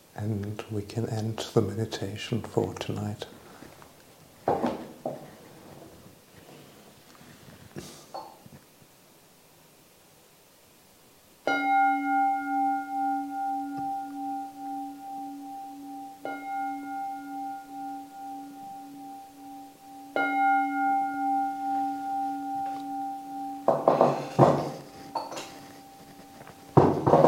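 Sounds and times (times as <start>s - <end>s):
speech: 0.2s - 3.4s
meditation bell ringing: 11.5s - 27.1s.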